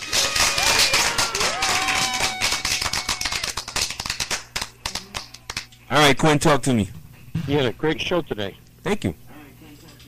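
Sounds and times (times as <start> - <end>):
clapping sound effect: 0.0 - 5.7
speech: 5.9 - 9.2.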